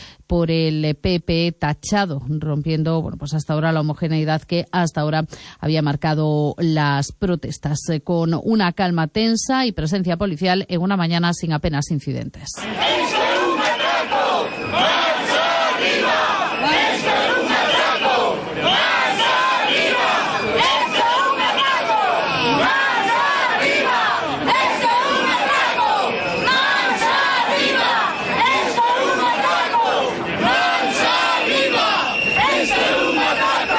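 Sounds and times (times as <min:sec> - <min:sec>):
speech: 0:00.3 - 0:13.2
large protest crowd shouting slogans: 0:12.6 - 0:33.7.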